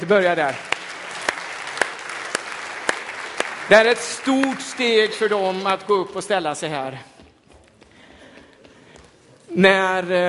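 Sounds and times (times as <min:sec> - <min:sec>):
speech: 0:00.0 - 0:00.7, 0:03.7 - 0:07.1, 0:09.6 - 0:10.2
audience applause: 0:00.0 - 0:05.9.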